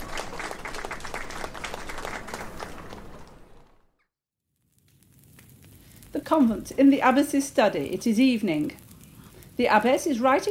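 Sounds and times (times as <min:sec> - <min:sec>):
villagers clapping appreciatively: 0:00.0 - 0:03.9
speech: 0:06.2 - 0:08.8, 0:09.6 - 0:10.4.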